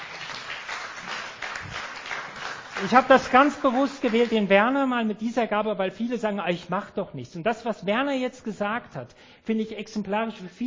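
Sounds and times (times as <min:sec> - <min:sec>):
congregation applause: 0:00.0 - 0:04.3
speech: 0:02.8 - 0:10.6.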